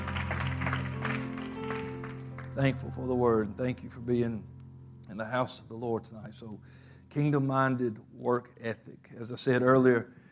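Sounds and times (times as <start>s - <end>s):
crowd clapping in church: 0.0s - 3.2s
sustained low organ-like tones: 0.0s - 10.0s
speech: 2.6s - 4.5s, 5.1s - 10.2s.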